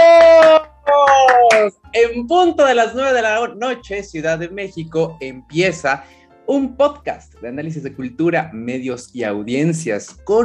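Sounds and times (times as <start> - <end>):
hand claps: 0.0 - 1.8
speech: 1.6 - 10.4.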